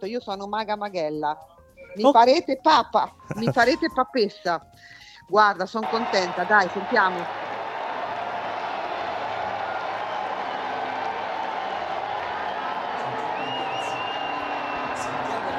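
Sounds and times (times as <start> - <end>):
speech: 0.0 - 7.4
crowd in a town square applauding: 5.8 - 15.5.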